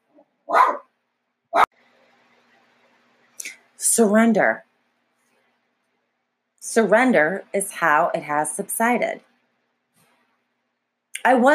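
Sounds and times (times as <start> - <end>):
dog barking: 0.5 - 0.9
speech: 4.0 - 4.7, 6.8 - 9.3, 11.2 - 11.5.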